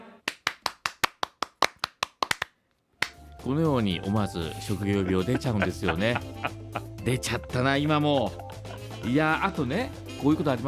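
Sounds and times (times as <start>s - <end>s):
applause: 0.2s - 3.2s
speech: 3.4s - 10.6s
laughter: 4.4s - 9.7s.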